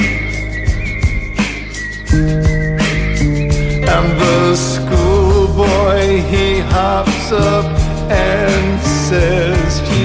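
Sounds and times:
whistling across the meadow: 0.0 - 6.4
speech: 7.0 - 9.9.

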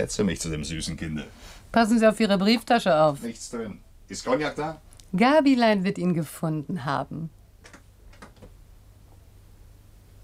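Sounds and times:
speech: 0.0 - 7.8
door opening with short dry clicks and knocks: 7.6 - 8.6.

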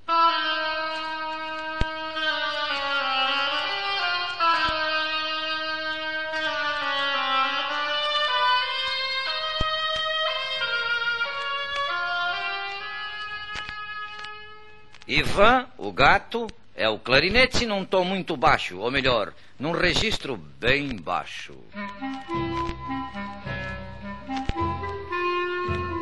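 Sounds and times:
oboe playing a melody: 0.0 - 15.0, 21.7 - 26.0
speech: 15.2 - 22.2.

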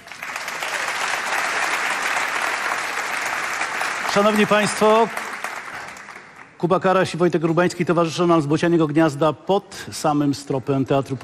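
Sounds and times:
theatre audience applauding at a gala: 0.0 - 6.6
speech: 4.2 - 5.2, 6.6 - 11.2.

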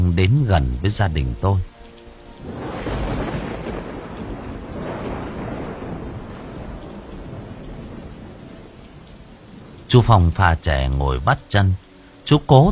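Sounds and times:
rainfall: 0.0 - 12.6
speech: 0.2 - 1.7, 9.9 - 12.6
rumbling thunder during rain: 2.4 - 11.2.

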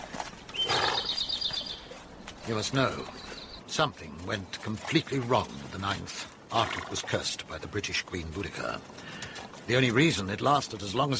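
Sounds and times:
horse hooves clopping and shuffling: 0.0 - 11.1
picketed horse whinnying: 0.5 - 1.4
speech: 2.5 - 11.1.

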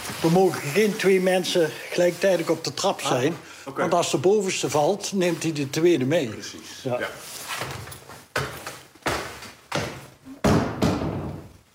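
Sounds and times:
speech: 0.2 - 7.9
attic hatch opening with wooden thuds and knocks: 8.3 - 11.6.

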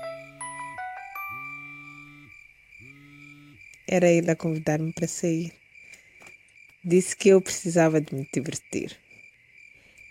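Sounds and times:
mobile phone ringing with electronic chime-like ringtone: 0.0 - 3.6
speech: 3.9 - 5.6, 6.8 - 9.0.

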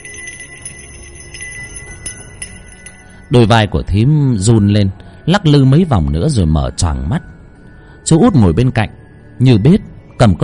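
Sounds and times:
small bell jingling: 0.0 - 3.6
speech: 3.3 - 7.3, 8.0 - 10.4.

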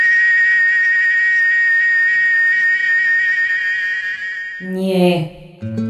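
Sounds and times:
cicada singing loudly: 0.0 - 4.6
speech: 4.6 - 5.8.

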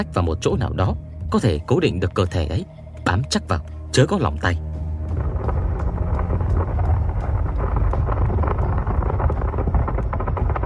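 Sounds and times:
speech: 0.0 - 4.7
deep thunderous rumble inside a mountain: 4.6 - 10.6
sharp crackles and pops: 4.6 - 10.6.

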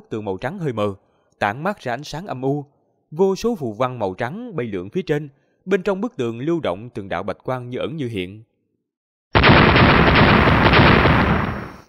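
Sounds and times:
speech: 0.0 - 8.5
explosions shattering an ice wall: 9.4 - 11.8.

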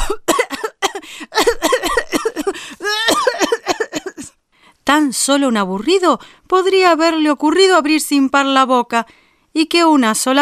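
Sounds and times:
fit of coughing: 0.0 - 4.3
speech: 4.9 - 10.3.

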